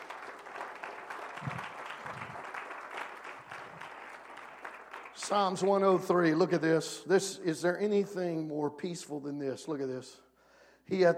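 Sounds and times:
audience clapping: 0:00.0 - 0:06.2
speech: 0:05.3 - 0:10.2, 0:10.9 - 0:11.1.

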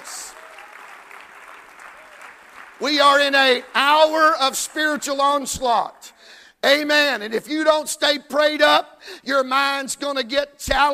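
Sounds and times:
audience clapping: 0:00.0 - 0:05.5
speech: 0:02.8 - 0:10.9.

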